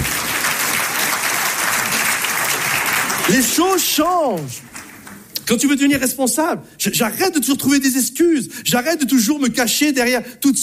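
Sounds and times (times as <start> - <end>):
audience applause: 0.0 - 5.2
speech: 3.3 - 4.7, 5.5 - 10.6.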